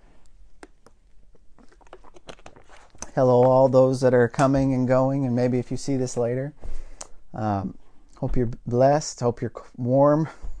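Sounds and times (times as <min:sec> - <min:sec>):
person drinking water: 0:00.2 - 0:03.1
speech: 0:03.2 - 0:06.6, 0:07.3 - 0:10.5.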